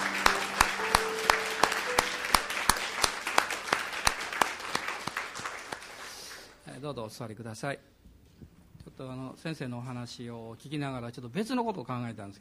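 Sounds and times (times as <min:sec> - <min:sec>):
audience applause: 0:00.0 - 0:06.6
speech: 0:06.9 - 0:08.0, 0:09.0 - 0:12.3.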